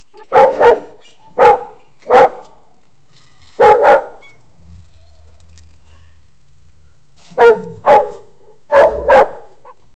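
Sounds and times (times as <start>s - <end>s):
powerful big dogs: 0.2s - 2.6s, 3.6s - 5.0s, 7.3s - 9.9s.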